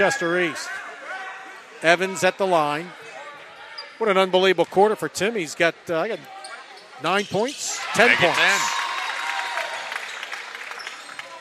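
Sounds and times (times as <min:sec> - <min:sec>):
speech: 0:00.0 - 0:00.9, 0:01.8 - 0:03.0, 0:04.0 - 0:06.4, 0:07.0 - 0:08.8
shoe squeaks: 0:03.6 - 0:04.1, 0:06.2 - 0:07.8
cheering basketball crowd in a packed gym: 0:07.8 - 0:11.3
clapping: 0:08.8 - 0:11.3.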